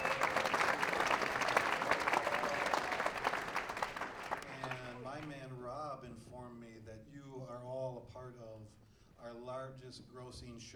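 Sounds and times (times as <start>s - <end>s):
audience applause: 0.0s - 5.3s
speech: 9.8s - 10.7s.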